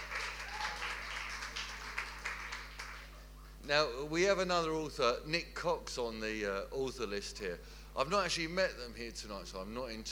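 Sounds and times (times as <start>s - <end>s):
audience applause: 0.0s - 3.1s
speech: 3.7s - 10.1s.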